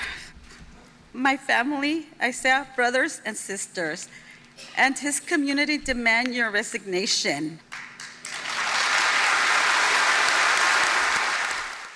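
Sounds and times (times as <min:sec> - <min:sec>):
speech: 0:01.2 - 0:07.7
applause: 0:07.7 - 0:11.9
room full of people cheering: 0:08.3 - 0:11.9.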